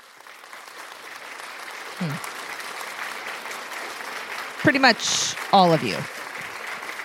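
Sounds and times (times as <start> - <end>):
applause sound effect: 0.0 - 7.0
person whooping: 2.0 - 2.2
speech: 2.0 - 2.4, 4.6 - 6.2.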